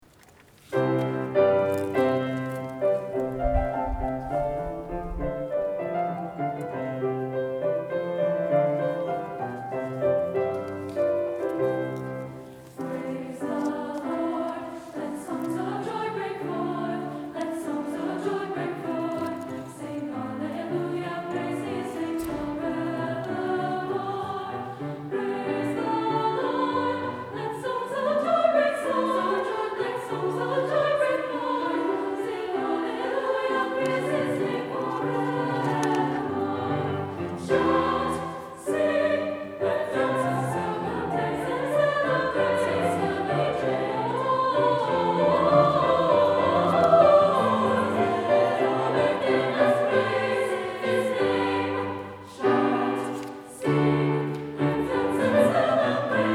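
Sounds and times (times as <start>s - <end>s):
concert choir singing: 0.7s - 56.3s.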